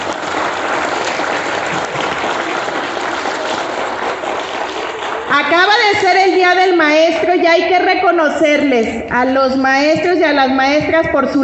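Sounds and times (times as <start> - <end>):
audience applause: 0.0 - 5.5
speech: 5.4 - 11.4.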